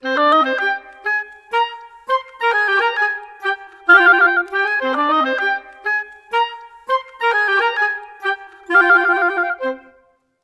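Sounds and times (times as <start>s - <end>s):
woodwinds in C minor: 0.0s - 10.2s.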